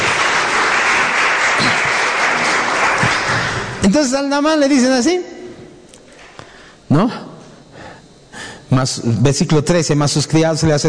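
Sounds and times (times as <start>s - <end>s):
audience applause: 0.0s - 3.8s
speech: 3.9s - 5.3s, 6.9s - 7.3s, 8.7s - 10.8s.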